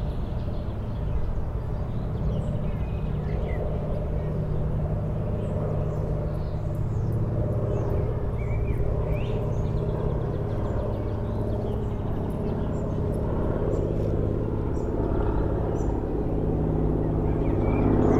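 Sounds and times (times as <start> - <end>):
city park ambience in Košice: 0.0 - 18.1.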